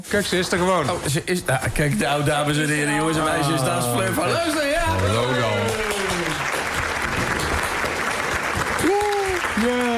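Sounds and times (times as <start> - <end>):
speech: 0.0 - 5.9
people clapping hands: 3.1 - 9.9.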